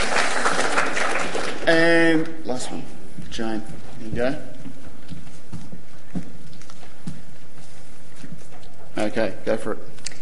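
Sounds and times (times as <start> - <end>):
audience applause: 0.0 - 1.8
speech: 1.7 - 4.5, 9.0 - 9.9.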